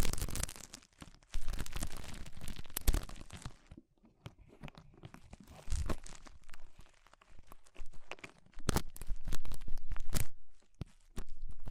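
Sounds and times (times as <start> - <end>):
ear cleaning with rhinestone and clay removal scraping: 0.0 - 11.6
sharp clicks and crunches: 0.0 - 11.6.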